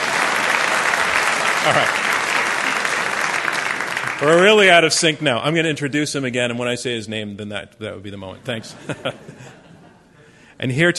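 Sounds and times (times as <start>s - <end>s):
debate audience clapping to welcome a speaker: 0.0s - 5.2s
laughter: 1.4s - 2.2s, 8.4s - 10.2s
speech: 1.6s - 2.0s, 4.2s - 9.6s, 10.6s - 10.9s.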